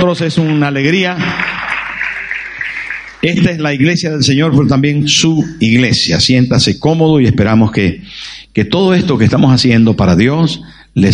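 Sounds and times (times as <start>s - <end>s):
speech: 0.0s - 1.5s, 3.2s - 11.1s
audience applause: 0.4s - 3.6s.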